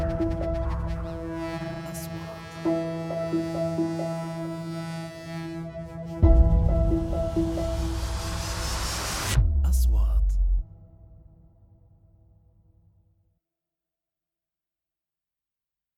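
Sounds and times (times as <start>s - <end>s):
trailer intro music: 0.0s - 12.6s.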